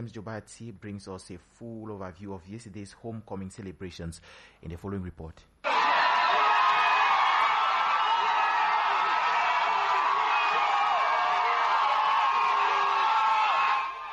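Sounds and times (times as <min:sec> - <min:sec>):
speech: 0:00.0 - 0:05.8
crowd cheering at welcome parade: 0:05.6 - 0:14.1.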